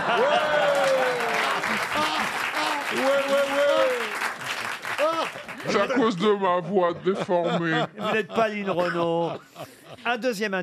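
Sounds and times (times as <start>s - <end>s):
laughter: 0.0s - 3.3s, 5.0s - 10.3s
game-show audience applause: 0.0s - 6.2s
speech: 2.9s - 3.9s, 5.6s - 10.6s.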